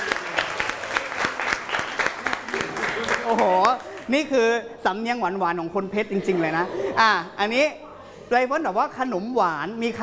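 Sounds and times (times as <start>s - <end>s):
applause: 0.0s - 4.1s
speech: 3.3s - 10.0s.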